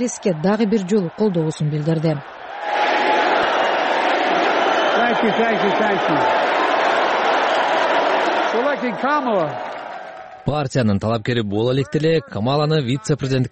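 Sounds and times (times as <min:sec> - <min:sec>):
speech: 0:00.0 - 0:02.3, 0:05.1 - 0:06.4, 0:08.8 - 0:09.7, 0:10.4 - 0:13.5
people shouting: 0:00.0 - 0:10.4
convention crowd applauding and cheering Biden: 0:00.0 - 0:12.0.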